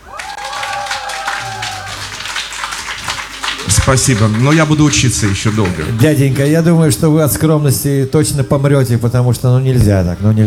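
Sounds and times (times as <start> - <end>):
applause: 0.0 - 6.6
speech: 3.9 - 10.4.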